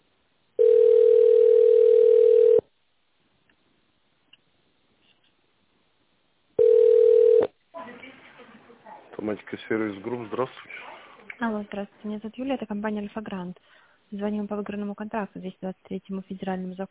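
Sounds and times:
telephone ringback tone: 0.6s - 2.6s, 6.6s - 7.5s
speech: 9.3s - 16.8s.

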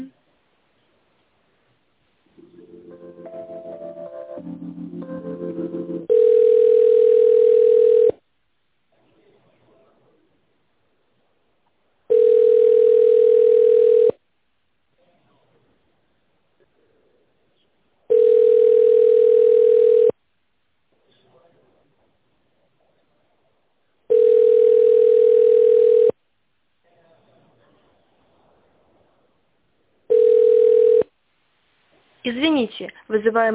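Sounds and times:
telephone ringback tone while a call is transferred to a tenders department: 6.1s - 8.1s, 12.1s - 14.1s, 18.1s - 20.1s, 24.1s - 26.1s, 30.1s - 31.0s
speech: 33.2s - 33.5s.

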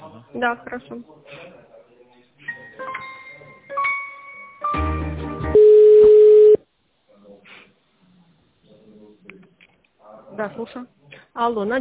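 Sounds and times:
voices: 0.0s - 3.7s, 7.1s - 11.7s
speech: 0.4s - 1.4s, 10.3s - 11.7s
telephone ringback tone: 5.6s - 6.6s.

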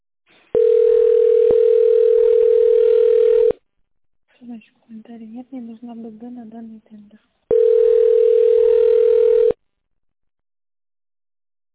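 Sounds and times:
telephone ringback tone while waiting on hold: 0.6s - 3.6s, 7.5s - 9.6s
speech: 5.1s - 7.4s.

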